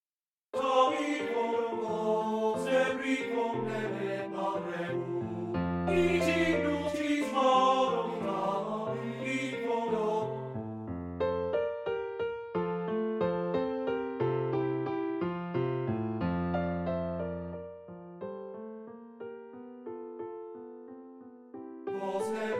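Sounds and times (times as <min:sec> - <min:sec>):
piano: 0:00.5 - 0:22.5
voice singing: 0:00.6 - 0:10.4.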